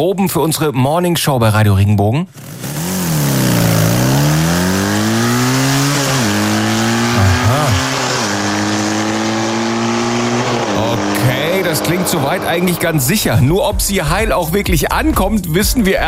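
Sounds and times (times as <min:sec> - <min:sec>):
speech: 0:00.0 - 0:02.8, 0:11.8 - 0:16.0
motocross bike engine revving: 0:02.3 - 0:14.2.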